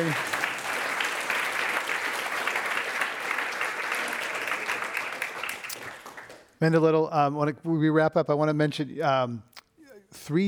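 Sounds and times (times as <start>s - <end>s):
speech: 0.0s - 0.3s, 6.6s - 9.5s, 10.1s - 10.4s
audience applause: 0.0s - 6.4s.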